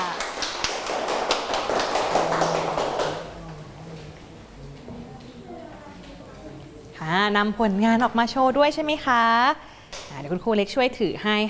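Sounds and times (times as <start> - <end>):
children clapping hands: 0.0 - 3.6
speech: 7.3 - 11.4.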